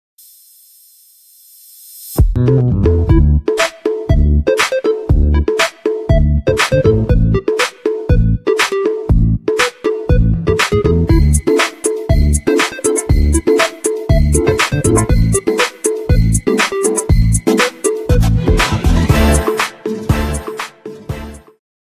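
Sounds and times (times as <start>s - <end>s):
cool rhythm ringtone: 2.9s - 21.4s.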